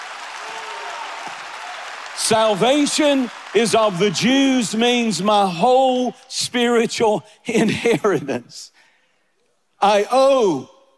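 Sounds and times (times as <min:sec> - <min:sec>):
audience clapping hands: 0:00.0 - 0:05.8
speech: 0:02.2 - 0:08.8, 0:09.8 - 0:10.7.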